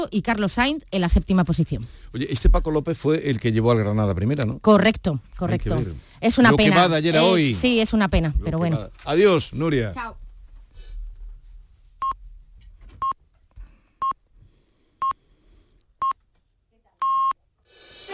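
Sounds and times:
speech: 0.0s - 10.2s
radio time signal beeps: 17.0s - 17.3s.

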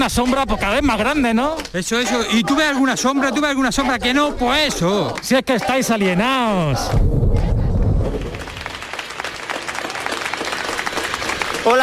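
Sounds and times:
speech: 0.0s - 7.2s
low rumble: 6.7s - 8.9s
people applauding from balconies: 8.0s - 11.8s.

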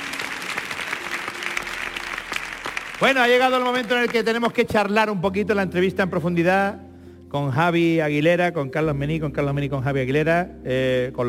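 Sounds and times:
audience applause: 0.0s - 4.7s
speech: 3.0s - 11.2s.

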